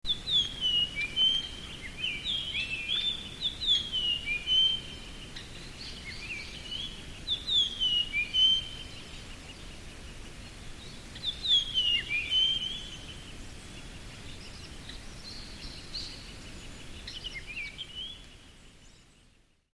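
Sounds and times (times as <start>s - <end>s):
background hiss: 0.0s - 19.7s
Japanese grosbeak singing whistled phrases: 0.1s - 9.1s, 10.8s - 13.2s, 17.0s - 18.2s.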